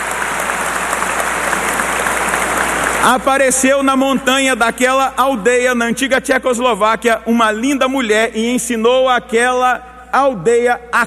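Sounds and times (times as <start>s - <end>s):
audience applause: 0.0s - 3.6s
speech: 3.0s - 11.0s.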